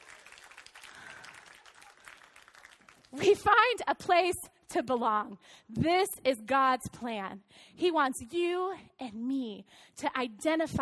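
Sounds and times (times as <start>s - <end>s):
audience clapping: 0.0s - 3.4s
speech: 3.1s - 10.7s.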